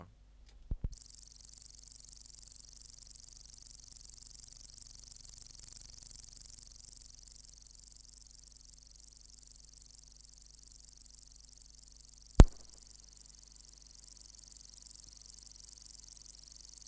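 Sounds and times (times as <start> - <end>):
Metrioptera bicolor chirping: 0.9 - 16.8.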